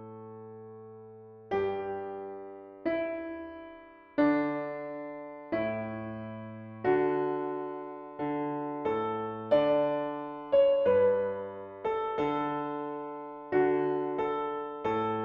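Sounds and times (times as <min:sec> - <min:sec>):
piano piece: 0:00.0 - 0:15.2.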